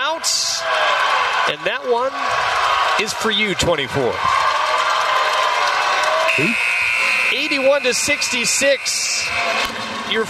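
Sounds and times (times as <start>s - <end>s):
crowd noise: 0.0s - 10.2s
speech: 1.5s - 4.6s, 6.4s - 6.7s, 7.3s - 10.2s
game-ending buzzer echoing in near-empty arena: 6.2s - 9.6s.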